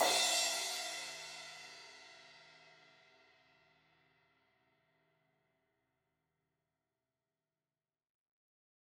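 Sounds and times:
16-inch crash cymbal hit on the edge: 0.0 - 1.2.

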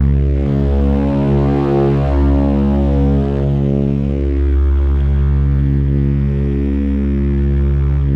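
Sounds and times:
Synclavier FM synthesizer C sharp note: 0.0 - 8.1.

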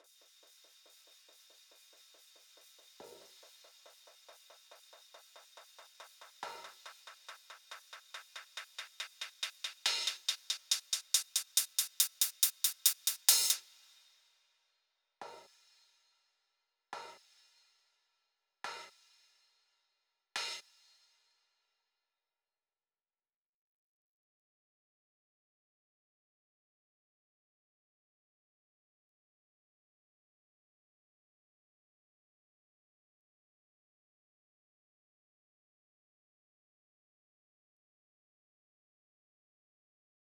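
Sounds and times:
140 BPM intro drum break with hi-hat: 0.0 - 14.2, 18.7 - 19.3, 20.4 - 20.8.

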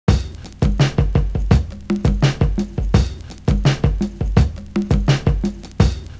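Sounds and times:
bongo drums: 0.0 - 6.1.

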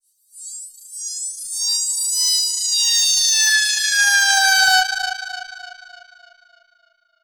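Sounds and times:
filtered alarm siren: 1.0 - 5.6.

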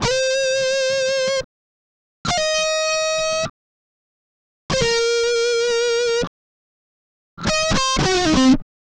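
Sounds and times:
guitar licks: 0.0 - 1.4, 2.3 - 3.5, 4.7 - 6.3, 7.4 - 8.6.

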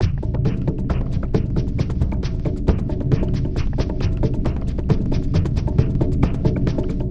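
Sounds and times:
swamp groove music: 0.0 - 7.0.

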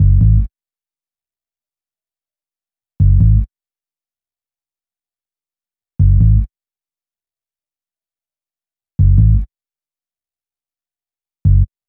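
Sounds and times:
hip-hop bass: 0.0 - 0.5, 3.0 - 3.4, 6.0 - 6.5, 9.0 - 9.4, 11.5 - 11.7.

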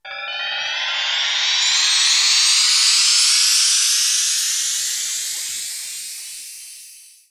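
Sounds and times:
ambience: 0.0 - 7.1.

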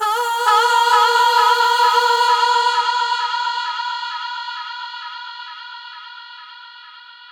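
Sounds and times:
effected female vocals: 0.0 - 5.3.

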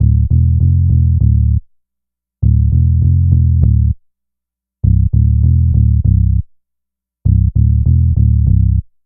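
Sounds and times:
synth bass: 0.0 - 1.6, 2.4 - 4.0, 4.8 - 6.4, 7.3 - 8.8.

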